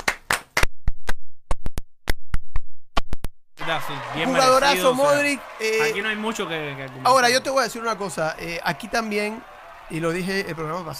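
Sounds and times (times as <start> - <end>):
small group applauding in the studio: 0.0 - 0.7, 3.6 - 10.9
speech: 3.7 - 10.9.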